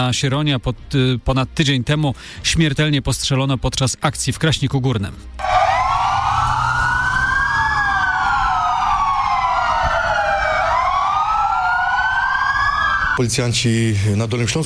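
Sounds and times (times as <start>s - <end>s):
speech: 0.0s - 5.5s, 13.2s - 14.6s
police car sirens wailing in tribute: 5.4s - 13.2s.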